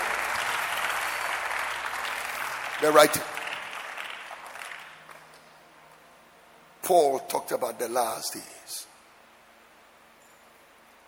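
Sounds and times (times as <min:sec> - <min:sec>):
audience clapping: 0:00.0 - 0:05.4
speech: 0:02.8 - 0:03.4, 0:06.9 - 0:08.9.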